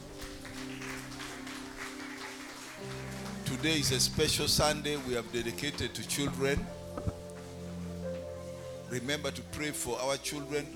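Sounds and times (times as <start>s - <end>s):
audience clapping: 0.0s - 7.5s
speech: 3.6s - 7.1s, 8.9s - 10.7s.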